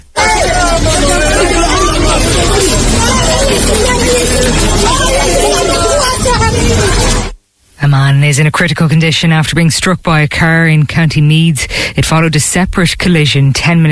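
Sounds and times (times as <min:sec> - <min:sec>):
people shouting during earthquake: 0:00.0 - 0:07.3
speech: 0:08.3 - 0:13.9.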